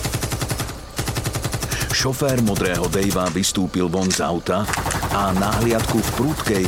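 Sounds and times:
submachine gun fire on a night road: 0.0s - 3.3s, 4.6s - 6.6s
speech: 2.0s - 6.6s.

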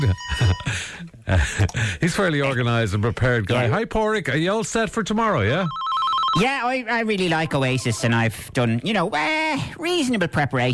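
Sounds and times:
iPhone 15 Pro Max and Samsung Galaxy phones ringing during an equipment test: 0.0s - 0.8s, 5.7s - 6.5s, 7.2s - 8.2s
speech: 0.0s - 10.7s.

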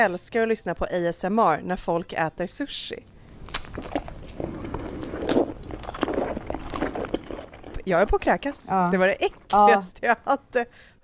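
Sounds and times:
speech: 0.0s - 3.2s, 7.9s - 10.9s
person eating a piece of cake: 3.1s - 9.6s.

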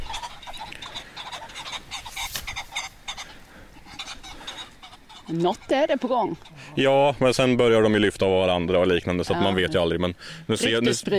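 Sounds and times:
pheasant wings fluttering: 0.0s - 6.5s
stressed pheasants calling: 0.0s - 11.1s
speech: 5.3s - 11.1s.

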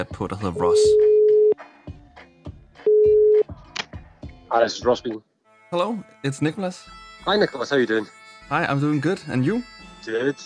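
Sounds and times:
speech: 0.0s - 1.1s, 4.5s - 10.4s
telephone ringing tone: 0.6s - 1.6s, 2.9s - 3.4s.

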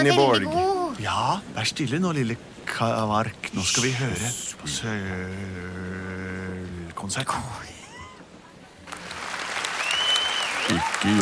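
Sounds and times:
speech: 0.0s - 7.8s, 10.7s - 11.2s
audience clapping: 8.8s - 11.2s
faint high whistle: 9.8s - 10.9s.

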